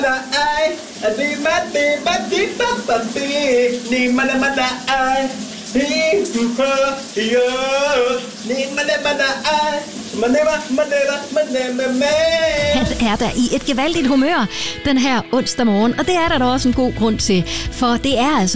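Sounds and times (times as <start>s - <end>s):
man singing under running shower: 0.0s - 14.2s
running shower spray: 0.0s - 14.8s
speech: 0.1s - 18.5s.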